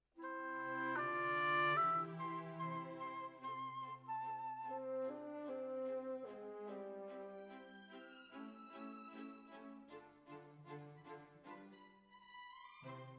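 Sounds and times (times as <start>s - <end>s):
oboe: 0.2s - 7.6s.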